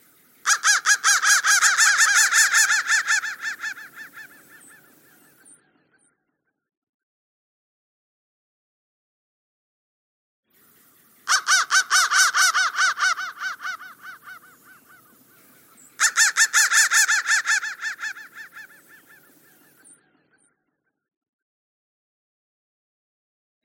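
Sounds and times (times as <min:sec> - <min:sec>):
crow cawing: 0:00.4 - 0:05.4, 0:11.2 - 0:19.8.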